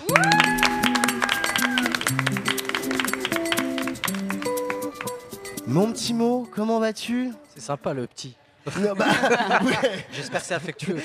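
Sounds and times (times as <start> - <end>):
tonal whoops: 0.0 - 2.1
crowd applauding: 0.0 - 5.7
music: 0.0 - 9.8
speech: 5.7 - 11.0
laughter: 8.7 - 11.0.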